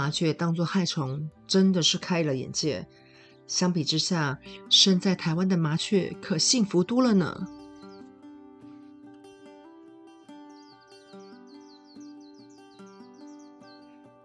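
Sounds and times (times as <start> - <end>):
speech: 0.0 - 7.6
Japanese white-eye chirping: 7.1 - 8.1, 10.3 - 14.2.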